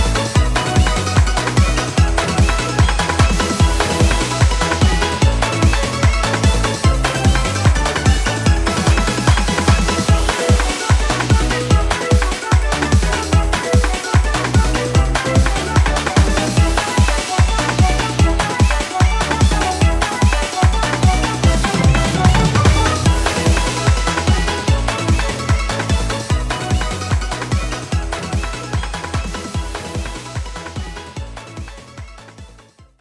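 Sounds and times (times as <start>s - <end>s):
background music for a result screen: 0.0s - 32.9s.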